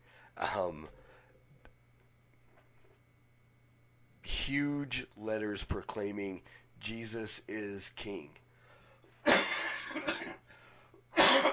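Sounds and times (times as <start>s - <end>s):
speech: 0.6s - 1.0s, 4.5s - 8.4s
person with a cold coughing: 9.2s - 10.5s, 11.2s - 11.5s.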